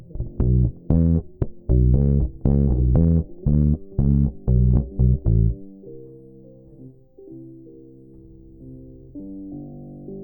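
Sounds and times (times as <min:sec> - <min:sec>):
bass guitar recorded by direct input: 0:00.0 - 0:05.7.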